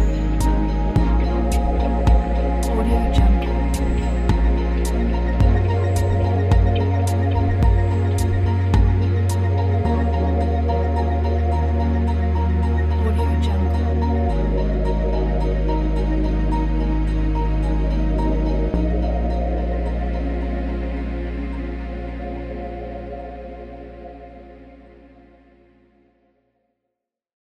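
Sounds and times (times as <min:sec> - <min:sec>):
ambient soundscape: 0:00.0 - 0:26.2.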